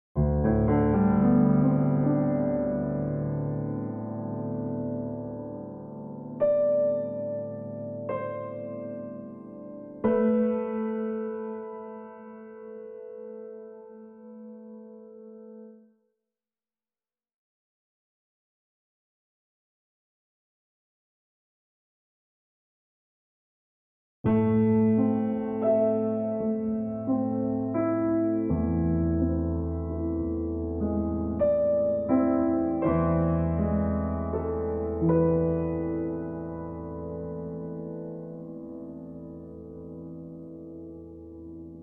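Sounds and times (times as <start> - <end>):
sad piano music: 0.2 - 15.9, 24.2 - 41.8.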